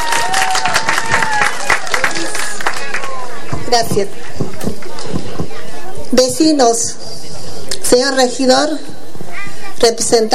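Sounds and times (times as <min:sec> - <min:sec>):
audience applause: 0:00.0 - 0:03.5
speech: 0:03.7 - 0:05.2, 0:06.1 - 0:07.1, 0:07.9 - 0:09.0, 0:09.8 - 0:10.3.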